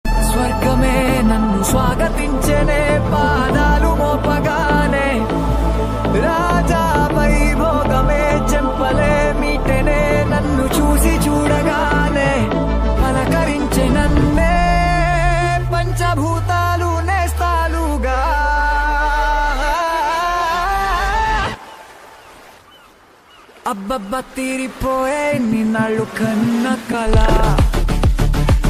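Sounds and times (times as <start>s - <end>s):
Telugu song: 0.1s - 21.2s, 25.1s - 28.6s.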